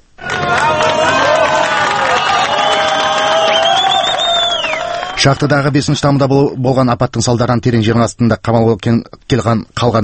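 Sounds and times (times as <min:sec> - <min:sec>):
shouts and shrill calls: 0:00.2 - 0:05.2
crowd cheering the first rescued miner at a Chilean mine rescue: 0:00.2 - 0:06.8
speech: 0:05.2 - 0:10.0.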